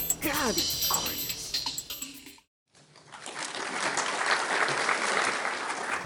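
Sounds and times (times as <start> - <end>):
speech: 0.4 - 0.7
audience applause: 3.0 - 6.0.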